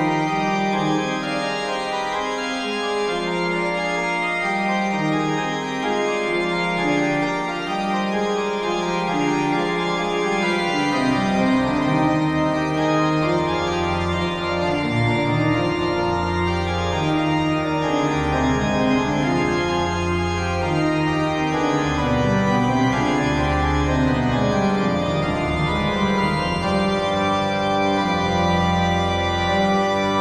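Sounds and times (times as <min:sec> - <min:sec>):
fugue in C minor: 0:00.0 - 0:30.1.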